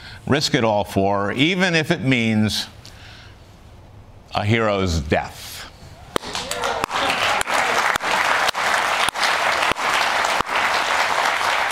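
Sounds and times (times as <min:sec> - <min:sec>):
speech: 0:00.2 - 0:02.8, 0:04.3 - 0:05.5
studio audience applause: 0:06.2 - 0:11.7.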